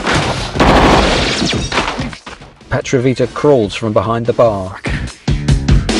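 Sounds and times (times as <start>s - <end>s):
staged gunfire in an audio drama shootout in a bar: 0.0s - 2.3s
crashing impacts: 0.0s - 2.6s
speech: 1.4s - 1.8s, 2.7s - 5.0s.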